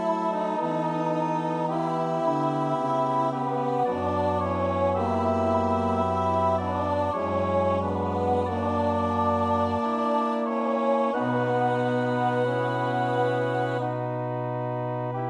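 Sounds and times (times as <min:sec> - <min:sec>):
tenor and bass choir part singing practice: 0:00.0 - 0:15.2.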